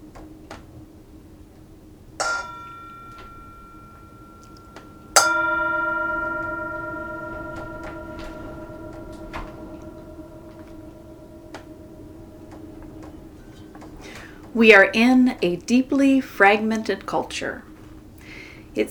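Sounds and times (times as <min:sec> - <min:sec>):
mindfulness bell ringing: 0:02.2 - 0:15.0
speech: 0:14.6 - 0:17.7.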